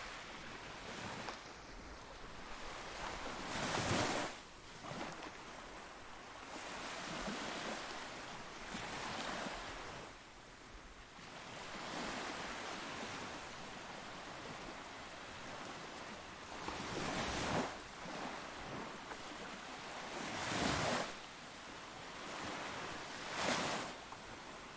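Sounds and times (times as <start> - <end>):
sea waves: 0.0 - 24.7.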